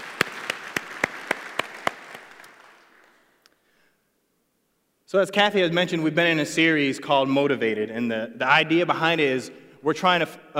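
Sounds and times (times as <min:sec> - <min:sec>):
audience applauding: 0:00.0 - 0:03.2
speech: 0:05.1 - 0:10.5.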